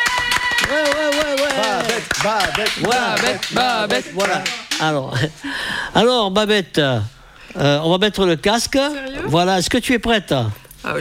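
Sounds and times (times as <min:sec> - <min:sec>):
voices calling out and cheering: 0:00.0 - 0:04.8
audience applause: 0:00.0 - 0:04.9
speech: 0:02.0 - 0:10.9.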